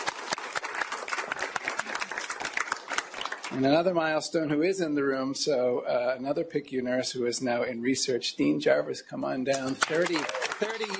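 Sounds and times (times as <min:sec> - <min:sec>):
audience clapping: 0:00.0 - 0:03.8, 0:09.5 - 0:10.9
speech: 0:03.5 - 0:10.9.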